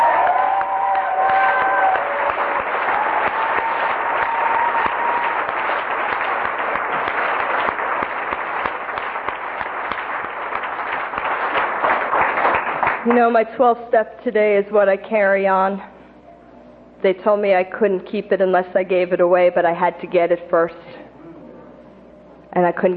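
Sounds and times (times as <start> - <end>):
crowd clapping: 0.0 - 13.4
speech: 13.1 - 15.9, 17.0 - 20.9, 22.6 - 22.9.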